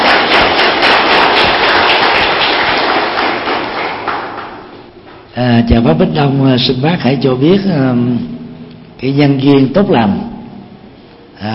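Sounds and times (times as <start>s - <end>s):
audience applause: 0.0s - 4.8s
speech: 5.6s - 8.3s, 9.0s - 10.3s, 11.4s - 11.5s.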